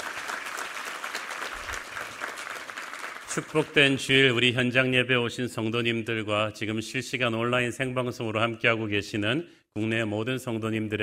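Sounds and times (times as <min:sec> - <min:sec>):
audience applause: 0:00.0 - 0:04.0
speech: 0:03.4 - 0:11.0.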